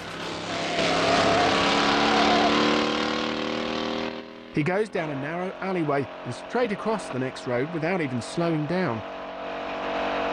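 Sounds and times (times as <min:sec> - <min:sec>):
van and car engines roaring in a film chase: 0:00.0 - 0:10.3
speech: 0:04.6 - 0:09.2.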